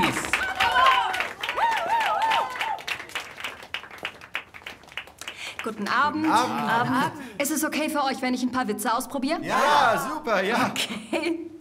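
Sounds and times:
audience applause: 0.0 - 6.9
speech: 5.7 - 11.4.

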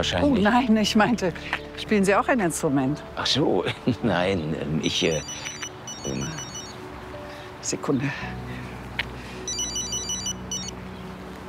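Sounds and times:
speech: 0.0 - 6.4, 7.6 - 8.4
phone ringing with an electronic trill: 5.1 - 6.8, 9.5 - 10.7.

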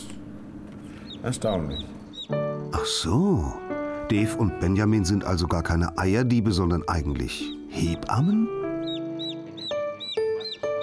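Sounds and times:
chick peeping loudly: 0.8 - 2.7, 8.2 - 10.8
speech: 1.2 - 8.6.

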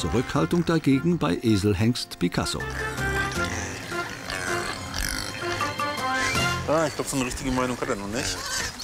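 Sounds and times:
speech: 0.0 - 3.0, 6.7 - 8.7
domestic pigs grunting: 2.6 - 7.0.

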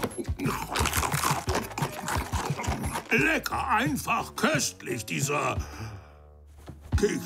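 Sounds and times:
crunchy cookie being bitten and chewed: 0.0 - 3.5
speech: 3.1 - 5.9, 7.0 - 7.2.

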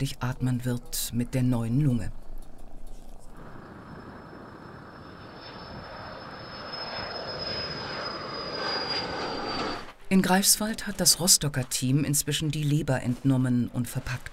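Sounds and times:
speech: 0.0 - 2.2, 10.1 - 14.3
charter airplane flying to Munich: 2.5 - 12.7.

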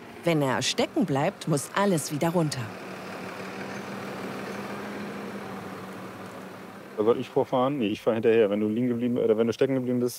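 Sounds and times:
tractor engine idling: 0.0 - 8.2
speech: 0.2 - 2.8, 7.0 - 10.1.

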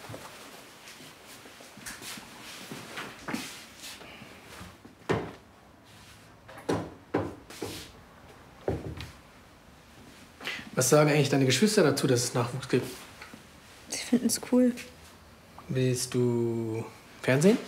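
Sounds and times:
wooden knocks and clunks of things put away into a cupboard: 6.5 - 7.4, 8.6 - 9.2
speech: 10.8 - 13.0, 14.1 - 15.0, 15.7 - 17.6.

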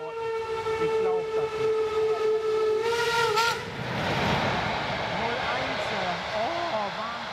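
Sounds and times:
train whistle at a station: 0.0 - 3.7
train rumbling and hissing at a station: 0.0 - 7.3.

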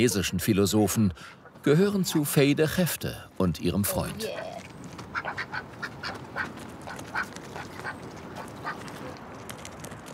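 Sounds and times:
speech: 0.0 - 4.6
pet ducks quacking: 5.1 - 8.8.

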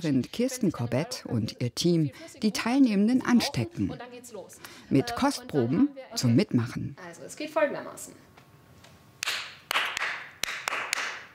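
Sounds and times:
speech: 0.0 - 8.3
group clapping in rhythm: 9.2 - 11.3.

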